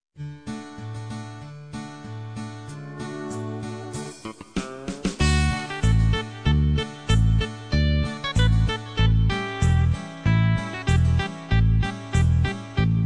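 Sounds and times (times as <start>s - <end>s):
krakowiak folk dance tune: 2.7s - 13.0s.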